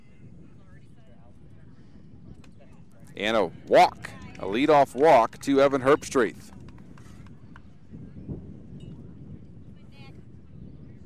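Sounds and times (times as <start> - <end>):
wind whipping around a ballpark in Nokomis during a baseball game: 0.0 - 11.0
baseball commentator speaking: 3.2 - 6.5
speech: 3.2 - 6.5.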